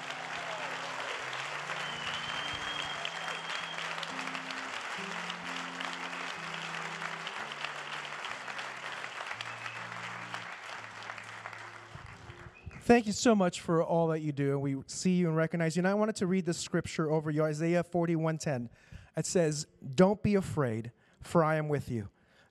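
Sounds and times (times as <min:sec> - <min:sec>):
audience applause: 0:00.0 - 0:12.9
sustained musical chords: 0:01.2 - 0:12.6
speech: 0:12.9 - 0:22.2.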